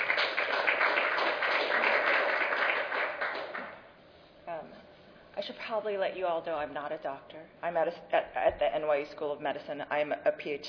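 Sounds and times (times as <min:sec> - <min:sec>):
audience applause: 0:00.0 - 0:03.7
speech: 0:05.7 - 0:10.6.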